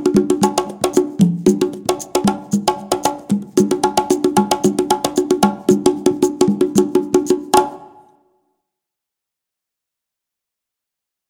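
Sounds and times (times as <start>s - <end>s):
Afro percussion band: 0.0s - 8.0s.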